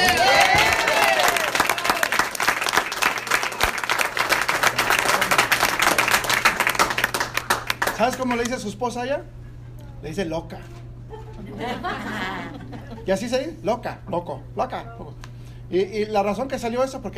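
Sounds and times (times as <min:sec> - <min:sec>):
audience applause: 0:00.0 - 0:08.4
speech: 0:08.0 - 0:09.4, 0:10.0 - 0:10.8, 0:11.6 - 0:12.3, 0:13.0 - 0:15.0, 0:15.7 - 0:17.1
laughter: 0:11.1 - 0:13.3.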